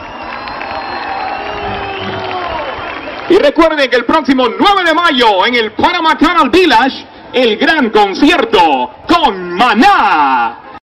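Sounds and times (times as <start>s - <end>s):
crowd applause and cheering: 0.0s - 4.1s
speech: 3.3s - 10.6s.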